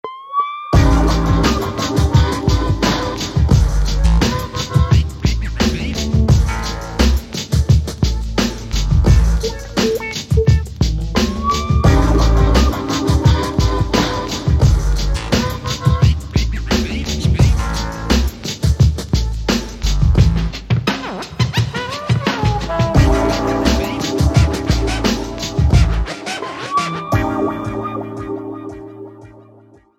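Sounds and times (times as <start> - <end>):
techno music: 0.8 - 29.8.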